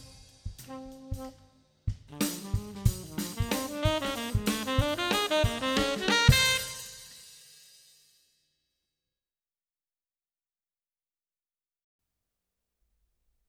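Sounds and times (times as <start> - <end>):
trumpet: 0.0 - 7.4
weird funk music: 2.1 - 7.0.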